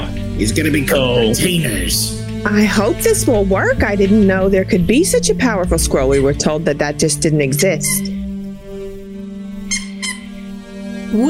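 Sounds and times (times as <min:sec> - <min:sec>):
speech: 0:00.4 - 0:08.2
squeaky donut squeaking: 0:07.8 - 0:08.2, 0:09.7 - 0:10.4.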